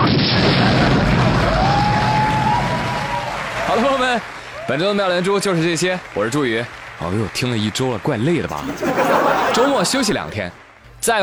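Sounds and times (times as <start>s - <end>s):
explosion sound effect: 0.0s - 3.3s
speech: 4.1s - 11.2s
laughter: 8.2s - 10.6s.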